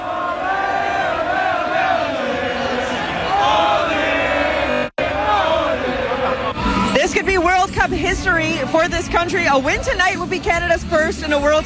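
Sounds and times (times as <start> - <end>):
festival crowd cheering: 0.0 - 7.7
speech: 8.1 - 11.6.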